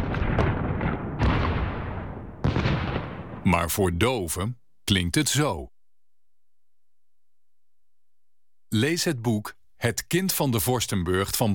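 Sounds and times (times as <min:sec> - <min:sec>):
bombing explosions: 0:00.0 - 0:03.7
speech: 0:03.4 - 0:05.7, 0:08.7 - 0:11.5.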